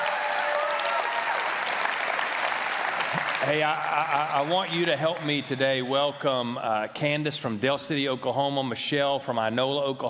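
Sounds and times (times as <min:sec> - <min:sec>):
audience applause: 0:00.0 - 0:05.9
speech: 0:03.4 - 0:10.0.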